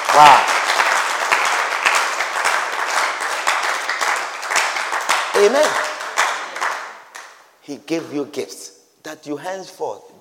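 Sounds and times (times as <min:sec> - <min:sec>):
audience clapping: 0:00.0 - 0:07.5
speech: 0:00.2 - 0:00.6, 0:05.4 - 0:05.9, 0:07.7 - 0:10.1.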